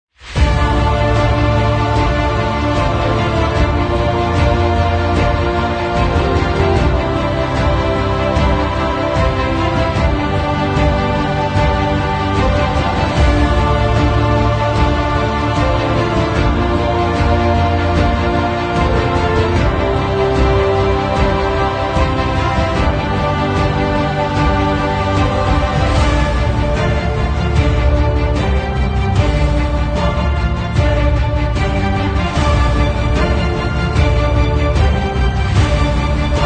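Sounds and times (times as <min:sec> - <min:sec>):
rising trailer music: 0:00.1 - 0:36.4.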